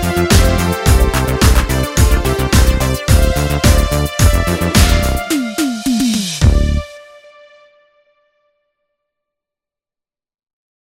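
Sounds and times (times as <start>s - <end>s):
80s pop production music: 0.0s - 7.0s.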